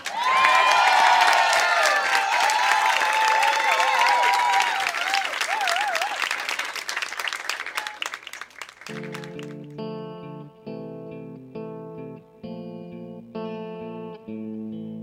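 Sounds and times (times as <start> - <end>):
audience applauding: 0.0 - 9.7.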